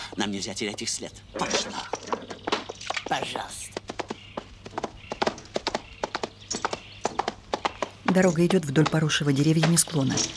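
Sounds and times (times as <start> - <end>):
horse hooves clip-clopping on a road along a tree-covered slope: 0.0 - 10.3
speech: 0.2 - 2.4, 3.1 - 3.8, 8.2 - 10.3.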